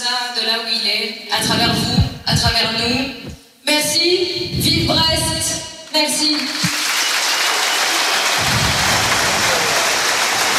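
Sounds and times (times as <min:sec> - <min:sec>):
speech: 0:00.1 - 0:06.7
crowd applauding: 0:06.3 - 0:10.5.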